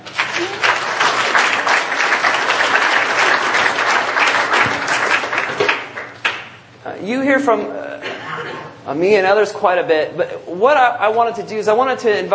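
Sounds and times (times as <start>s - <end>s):
audience applause: 0.0s - 6.6s
speech: 7.0s - 7.8s, 8.9s - 12.3s.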